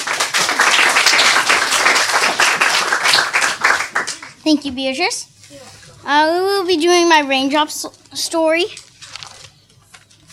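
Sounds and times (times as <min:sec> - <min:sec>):
crowd applauding: 0:00.0 - 0:04.4
speech: 0:04.5 - 0:08.8.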